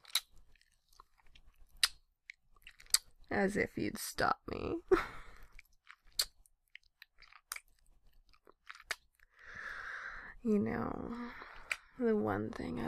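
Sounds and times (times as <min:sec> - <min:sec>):
chewing while tasting food: 0:00.0 - 0:03.3, 0:05.4 - 0:09.4
speech: 0:03.3 - 0:05.2, 0:10.4 - 0:11.4, 0:12.0 - 0:12.8
breathy vocal sound: 0:09.4 - 0:10.4.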